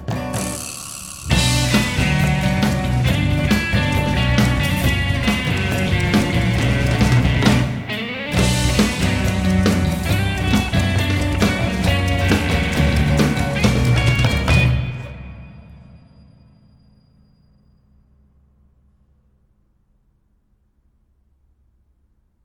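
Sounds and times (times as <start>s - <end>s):
high speed tank: 0.2s - 15.1s.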